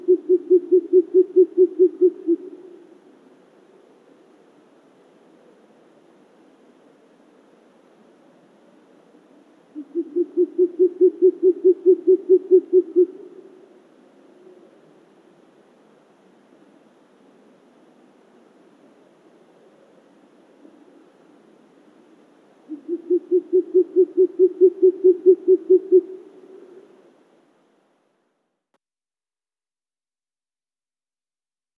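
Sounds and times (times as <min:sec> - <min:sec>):
short-eared owl Asio flammeus calling: 0:00.0 - 0:02.8, 0:09.7 - 0:13.7, 0:22.7 - 0:26.9.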